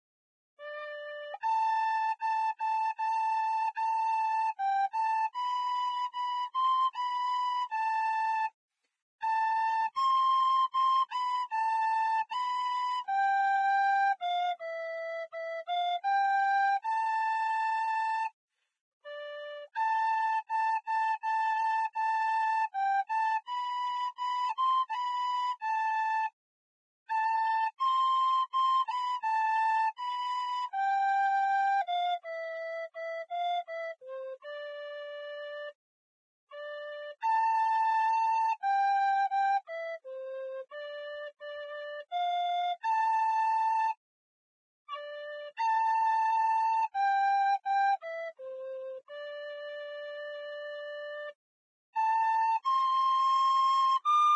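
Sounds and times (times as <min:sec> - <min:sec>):
flute: 0:00.6 - 0:26.4, 0:27.1 - 0:35.8, 0:36.5 - 0:44.0, 0:44.8 - 0:54.3.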